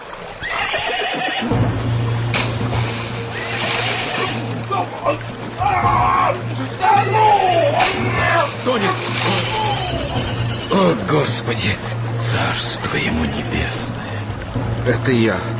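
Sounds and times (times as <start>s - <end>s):
hooves splashing into a river: 0.0s - 15.5s
horse neighing: 0.4s - 1.5s, 3.3s - 4.5s, 8.0s - 10.8s
speech: 11.3s - 15.5s.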